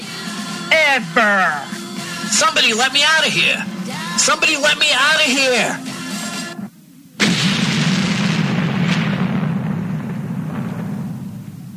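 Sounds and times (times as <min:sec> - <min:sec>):
speech: 0:01.0 - 0:01.7, 0:02.3 - 0:05.9
explosion: 0:07.2 - 0:11.7.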